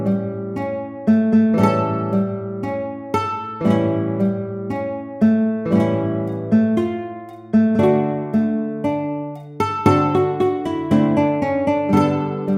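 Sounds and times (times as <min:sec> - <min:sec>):
guitar ensemble: 0:00.0 - 0:12.5.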